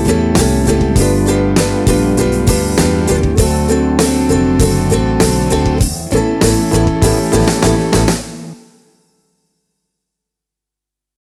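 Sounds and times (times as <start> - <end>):
blues played on ukulele: 0.0 - 8.6.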